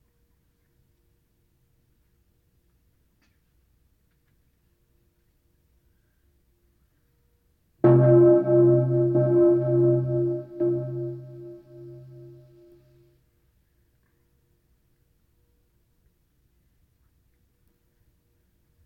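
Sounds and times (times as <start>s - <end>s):
bells ringing: 7.8s - 12.5s.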